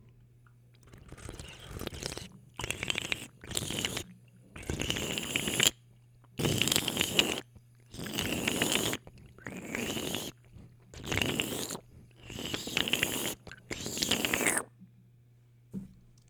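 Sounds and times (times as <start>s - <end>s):
water slurping: 0.8s - 14.7s.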